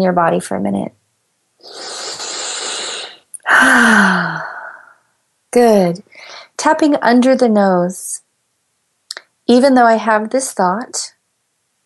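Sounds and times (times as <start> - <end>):
speech: 0.0 - 1.0, 1.6 - 1.9, 3.6 - 4.5, 5.5 - 8.2, 9.5 - 11.2
big deep breath during a guided tapping exercise: 1.6 - 5.0.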